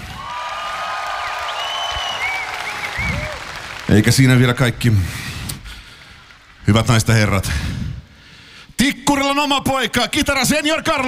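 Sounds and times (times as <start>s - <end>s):
concert applause for a guitarist introduced to the crowd: 0.0s - 6.7s
speech: 3.9s - 5.3s, 6.7s - 7.8s, 9.4s - 11.0s.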